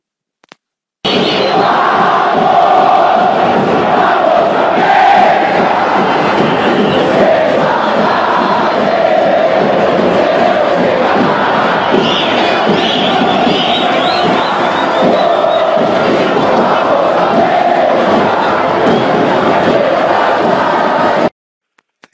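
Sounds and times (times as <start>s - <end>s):
football fans chanting a team chant: 1.1s - 21.3s.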